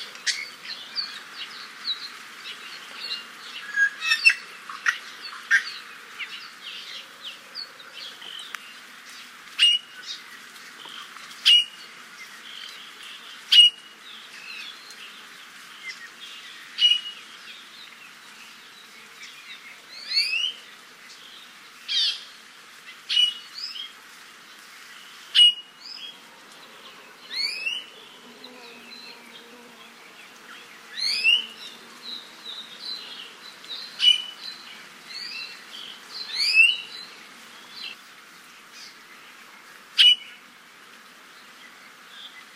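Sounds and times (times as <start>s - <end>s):
other birds soft twittering: 0.0s - 38.0s.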